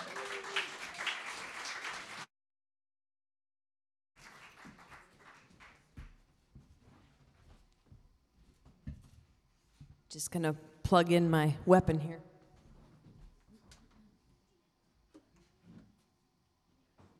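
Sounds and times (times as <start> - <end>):
audience round of applause: 0.0 - 2.3, 4.2 - 6.1
speech: 10.2 - 12.3.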